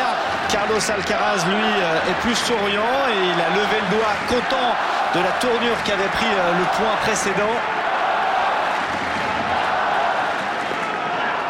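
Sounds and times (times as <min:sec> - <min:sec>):
tennis crowd cheering for Carlos Alcaraz: 0:00.0 - 0:11.4
speech: 0:00.5 - 0:07.8.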